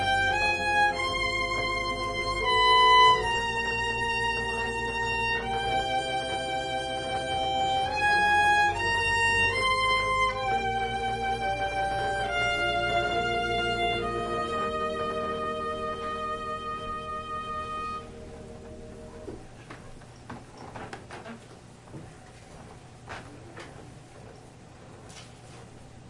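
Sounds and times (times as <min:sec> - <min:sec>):
violin playing a prelude: 0:00.0 - 0:19.5
organ playing a prelude: 0:00.0 - 0:21.0.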